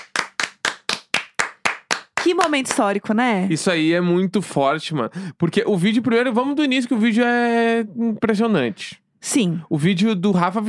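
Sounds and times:
hands clapping: 0.0s - 3.0s
speech: 2.2s - 10.6s.

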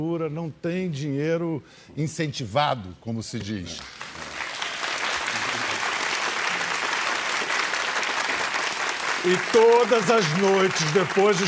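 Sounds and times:
speech: 0.0s - 4.2s, 9.2s - 11.4s
audience applause: 3.8s - 11.4s.

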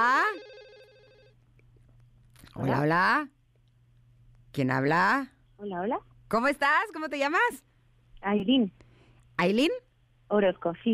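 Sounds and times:
incoming phone call ringtone: 0.0s - 1.4s
speech: 2.6s - 3.4s, 4.6s - 8.8s, 9.4s - 10.9s.

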